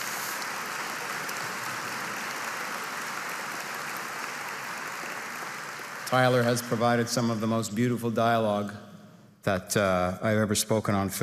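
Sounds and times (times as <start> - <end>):
audience applause: 0.0 - 7.7
speech: 6.1 - 11.2.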